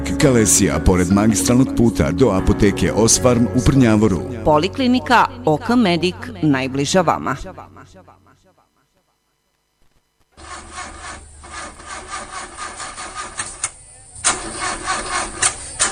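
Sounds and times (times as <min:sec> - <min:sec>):
speech: 0:00.1 - 0:08.2
old car engine cranking and failing to start: 0:10.4 - 0:15.8.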